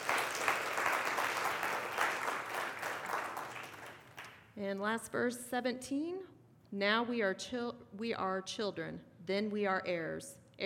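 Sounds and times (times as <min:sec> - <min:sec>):
audience clapping hands: 0:00.0 - 0:04.5
speech: 0:04.6 - 0:10.4.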